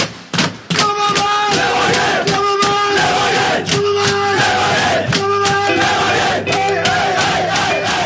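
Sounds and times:
football team cheering and chanting in a locker room: 0.7 - 8.0.

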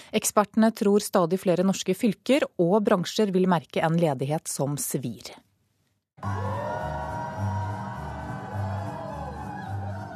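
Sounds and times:
speech: 0.1 - 5.5, 6.2 - 7.2
shoppers roaring and cheering: 6.2 - 10.1
whoops and shouts: 6.2 - 10.1.

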